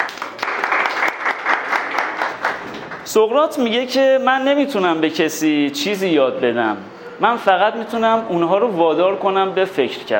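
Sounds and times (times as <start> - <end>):
audience applause: 0.0 - 3.1
speech: 3.1 - 10.1.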